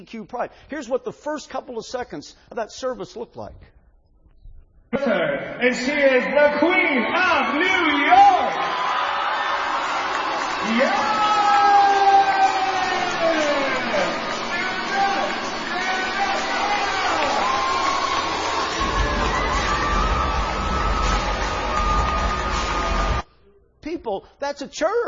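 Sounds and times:
speech: 0:00.0 - 0:03.8, 0:04.9 - 0:08.7, 0:10.6 - 0:11.3, 0:24.1 - 0:25.0
deafening applause at a church service: 0:06.4 - 0:23.2.

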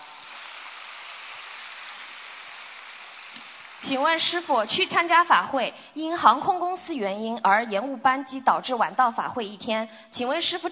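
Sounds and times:
audience applause: 0:00.0 - 0:03.9
speech: 0:03.4 - 0:10.7.

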